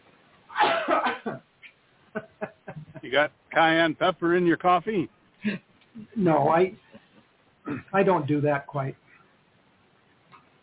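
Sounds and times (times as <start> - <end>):
person coughing after choking on coffee: 0.5 - 1.4, 7.7 - 8.0
laughter: 2.2 - 3.2
speech: 3.1 - 6.8, 7.7 - 9.0.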